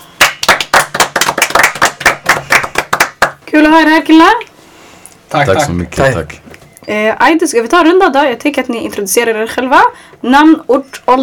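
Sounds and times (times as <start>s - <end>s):
applause: 0.2s - 3.4s
speech: 3.6s - 4.5s, 5.3s - 11.2s.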